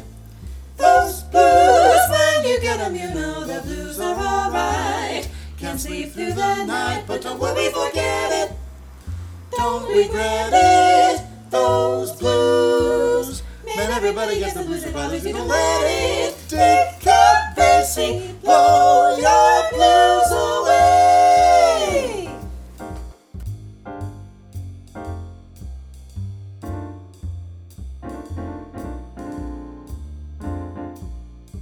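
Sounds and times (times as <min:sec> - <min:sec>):
vocal blues etude in F: 0:00.8 - 0:08.5, 0:09.5 - 0:22.5.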